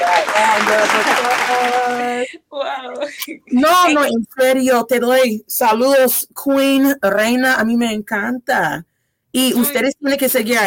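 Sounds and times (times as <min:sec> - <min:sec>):
audience applause: 0:00.0 - 0:02.2
speech: 0:00.3 - 0:10.6.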